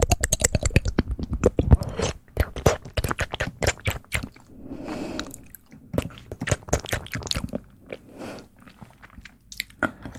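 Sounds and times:
wet mouth clicks: 0.0s - 4.5s, 5.1s - 10.1s
breathy smear: 4.5s - 5.5s.

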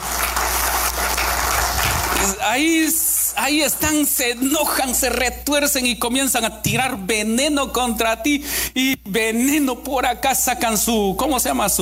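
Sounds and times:
audience clapping: 0.0s - 3.9s
speech: 2.2s - 11.8s.

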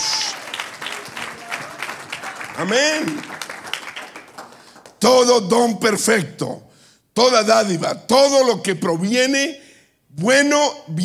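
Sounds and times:
audience applause: 0.0s - 5.0s
speech: 2.6s - 3.4s, 5.0s - 11.0s.

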